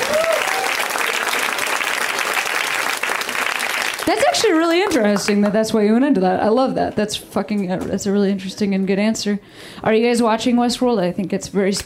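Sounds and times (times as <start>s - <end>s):
audience applause for a guest: 0.0s - 5.5s
speech: 4.1s - 11.8s.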